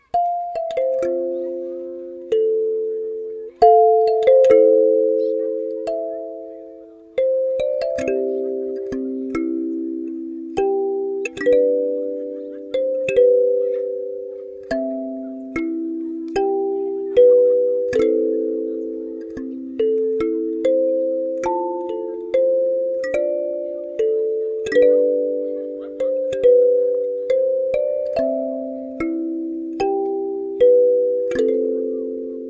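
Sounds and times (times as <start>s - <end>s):
kalimba cover: 0.0s - 32.4s.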